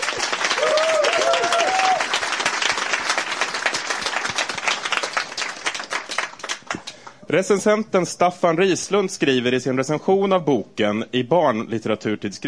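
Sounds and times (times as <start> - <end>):
crowd clapping: 0.0 - 7.2
high whistle or cheer: 0.6 - 2.0
speech: 7.3 - 12.4.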